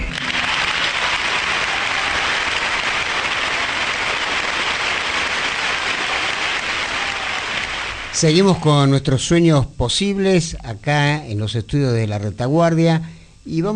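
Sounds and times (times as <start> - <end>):
studio audience clapping for an interviewee: 0.0 - 8.6
speech: 8.2 - 13.7.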